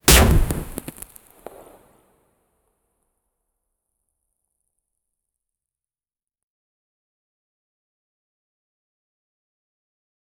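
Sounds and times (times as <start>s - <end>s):
crack from throwing: 0.0s - 1.8s.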